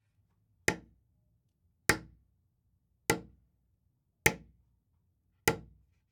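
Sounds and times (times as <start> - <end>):
hammer: 0.7 - 1.0, 1.9 - 2.2, 3.1 - 3.4, 4.3 - 4.5, 5.5 - 5.8.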